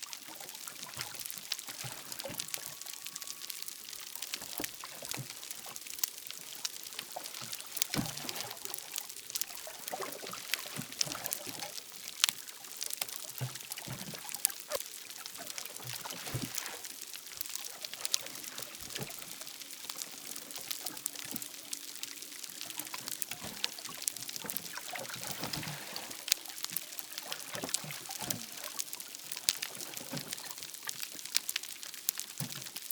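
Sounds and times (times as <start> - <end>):
snapping shrimp crackling underwater: 0.0 - 32.8.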